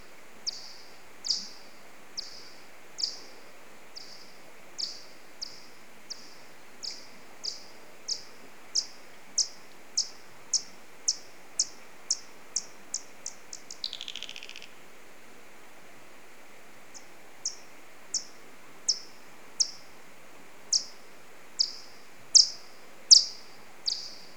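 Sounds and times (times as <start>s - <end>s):
hiss: 0.0s - 24.3s
Alcathoe bat echolocation calls: 4.0s - 14.7s, 21.6s - 24.3s.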